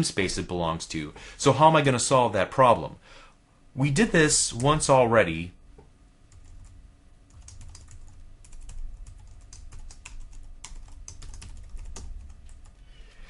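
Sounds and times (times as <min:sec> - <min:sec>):
speech: 0:00.0 - 0:03.2, 0:03.8 - 0:05.6
typing on a computer keyboard: 0:07.3 - 0:12.8.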